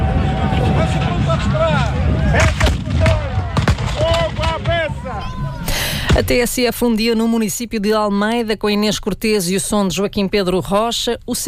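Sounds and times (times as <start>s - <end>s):
crowd voices murmuring and shouting: 0.0s - 6.2s
historic reenactment cannon blasts: 2.3s - 6.5s
speech: 6.2s - 11.4s.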